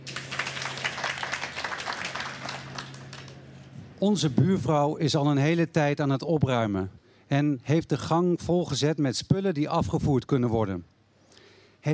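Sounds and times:
audience applause: 0.0 - 3.6
speech: 4.0 - 10.9.

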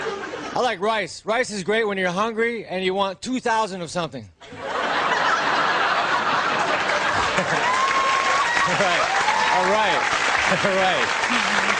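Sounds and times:
audience laughing at a comedy show: 0.0 - 0.7, 4.4 - 9.2, 10.2 - 11.7
speech: 0.6 - 4.7, 9.6 - 11.7
audience applause at a comedy show: 5.3 - 11.7.

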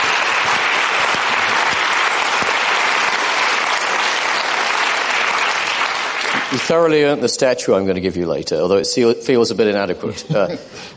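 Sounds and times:
audience round of applause: 0.0 - 7.0
speech: 6.5 - 10.9.

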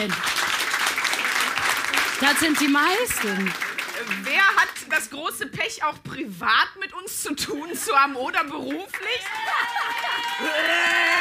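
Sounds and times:
speech: 0.0 - 0.3, 2.2 - 11.1
live audience clapping: 0.0 - 5.2, 7.7 - 11.1
laughter: 9.3 - 11.1.

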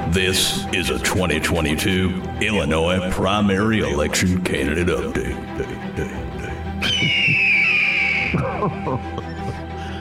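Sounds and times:
speech: 0.1 - 6.3, 8.6 - 9.3
laughter: 5.1 - 9.9
eagle screech: 6.8 - 8.4.

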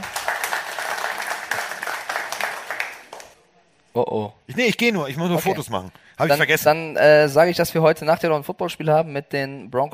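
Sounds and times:
audience applause: 0.0 - 3.4
speech: 4.0 - 9.9.

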